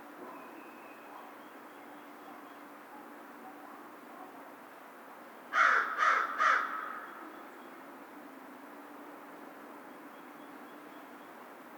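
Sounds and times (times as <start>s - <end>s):
American crow cawing: 5.5s - 7.2s.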